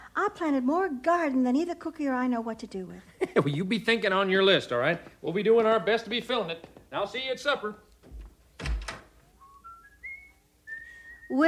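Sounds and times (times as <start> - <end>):
speech: 0.2 - 7.9, 11.3 - 11.4
person whistling: 9.3 - 11.4.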